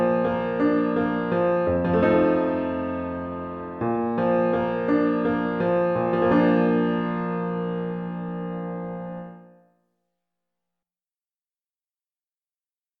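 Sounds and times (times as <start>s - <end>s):
piano piece: 0.0s - 9.7s.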